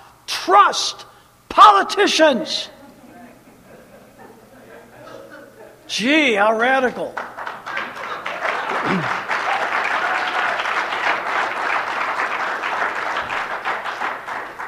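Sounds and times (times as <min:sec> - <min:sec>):
speech: 0:00.4 - 0:02.8, 0:05.9 - 0:07.4
laughter: 0:02.7 - 0:06.0, 0:07.4 - 0:09.6
audience applause: 0:07.2 - 0:14.6.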